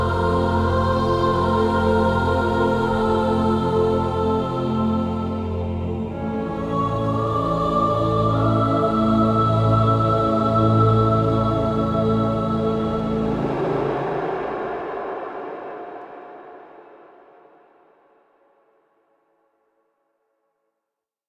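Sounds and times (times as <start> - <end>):
cradle lullaby background music: 0.0 - 14.7.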